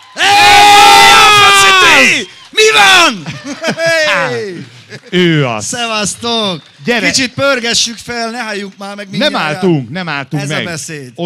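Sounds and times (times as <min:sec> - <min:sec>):
crowd of girls screaming and cheering: 0:00.0 - 0:04.4
laughter: 0:03.0 - 0:06.4
speech: 0:03.1 - 0:11.2.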